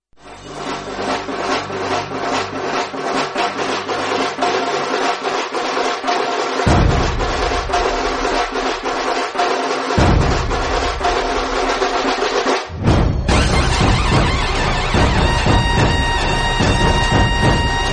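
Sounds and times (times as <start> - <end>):
Ganpati dhol tasha drumming ringtone: 0.2 - 17.9.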